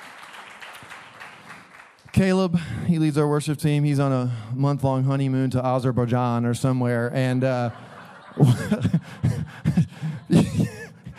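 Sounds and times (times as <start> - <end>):
crowd applauding: 0.0 - 2.4
speech: 2.2 - 9.3
laughter: 7.4 - 11.1.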